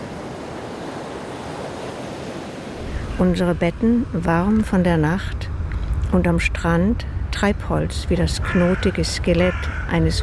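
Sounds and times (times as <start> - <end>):
ocean surf: 0.0 - 4.7
wind: 0.0 - 10.2
speech: 3.2 - 5.5, 6.1 - 10.2.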